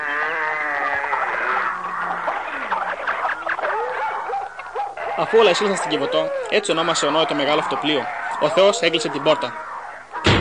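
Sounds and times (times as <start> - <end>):
bleating-like cries: 0.0 - 2.8, 5.0 - 10.2
laughter: 0.0 - 10.2
barking: 0.0 - 10.3
yelps and whines: 0.0 - 10.3
speech: 5.2 - 9.6.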